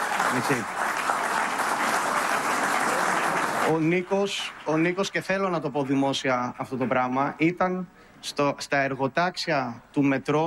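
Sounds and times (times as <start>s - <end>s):
audience applause: 0.0s - 5.2s
speech: 0.3s - 0.9s, 3.7s - 10.4s.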